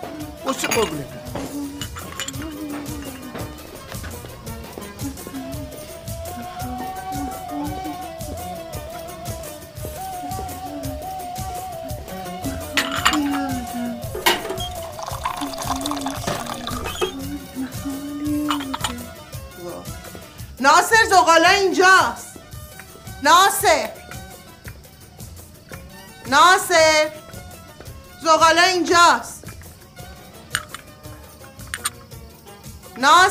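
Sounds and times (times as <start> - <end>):
speech: 0.5 - 1.6, 20.6 - 22.2, 23.2 - 24.0, 26.3 - 27.2, 28.2 - 29.3, 33.0 - 33.2
cups and dishes clinking: 0.5 - 4.6, 12.5 - 17.5, 18.3 - 19.2, 30.5 - 31.0, 31.6 - 32.0
two cups of tea being poured: 12.7 - 17.5, 18.5 - 19.0, 31.7 - 32.0.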